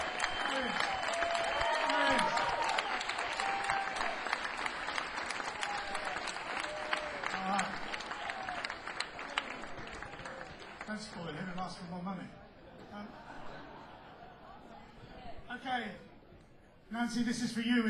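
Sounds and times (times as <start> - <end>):
cheers and whoops: 0.0 - 9.6
crowd applauding: 0.0 - 12.0
laughter: 12.6 - 15.3
speech: 17.1 - 17.8.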